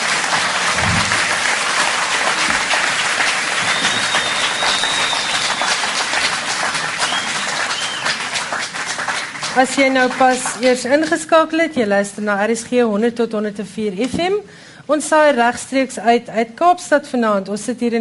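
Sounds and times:
audience clapping: 0.0s - 11.2s
speech: 9.6s - 17.9s.

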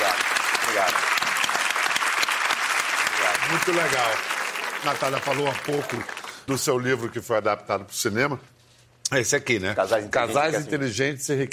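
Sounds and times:
crowd clapping: 0.0s - 7.2s
speech: 0.8s - 1.1s, 3.4s - 11.5s.

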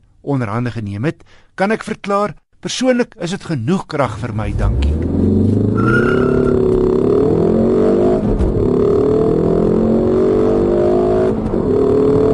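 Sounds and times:
speech: 0.2s - 6.6s
facelifted front-wheel-drive Ford Focus ST engine accelerating under heavy throttle: 4.2s - 12.3s.

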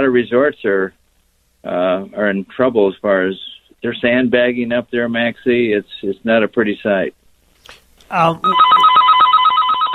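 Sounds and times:
speech: 0.0s - 1.0s, 1.6s - 8.8s
snooze alarm going off: 8.4s - 9.9s.

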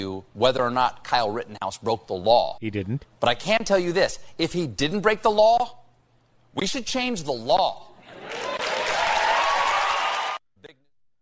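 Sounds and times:
speech: 0.0s - 5.8s, 6.6s - 8.5s
studio audience applause: 8.1s - 10.4s.

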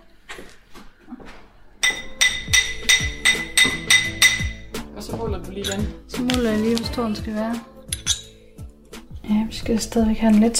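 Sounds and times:
hammer striking gold: 1.8s - 4.8s
speech: 5.1s - 7.8s, 9.3s - 10.5s.

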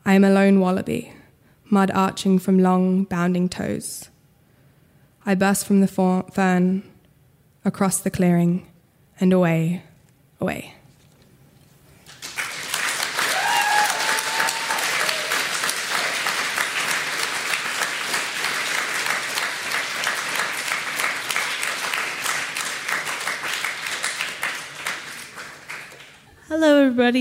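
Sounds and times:
speech: 0.1s - 4.1s, 5.2s - 6.9s, 7.6s - 10.8s, 27.0s - 27.1s
audience applause: 12.0s - 26.3s
faint cheers and whoops: 13.2s - 15.6s.

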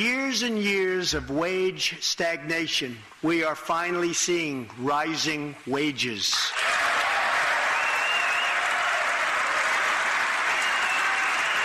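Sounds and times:
speech: 0.0s - 6.8s
large audience applauding: 6.5s - 11.6s.

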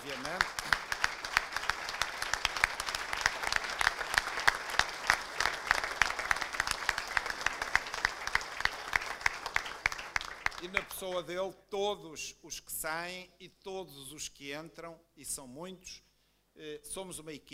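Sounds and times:
audience applause: 0.0s - 11.2s
speech: 11.0s - 17.5s.

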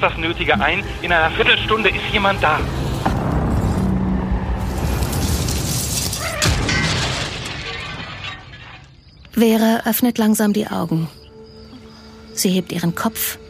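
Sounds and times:
speech: 0.0s - 2.8s, 9.4s - 11.2s, 12.4s - 13.4s
violent car crash: 2.4s - 9.2s
crunching metal: 2.4s - 9.4s
shattering windshield glass: 5.0s - 9.3s.

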